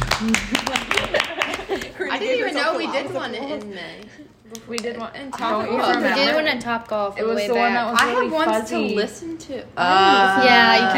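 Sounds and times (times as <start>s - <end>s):
people cheering: 0.0s - 1.9s
clap track sound effect: 0.0s - 2.0s
laughter: 0.0s - 3.9s
speech: 0.2s - 1.2s, 2.2s - 10.9s.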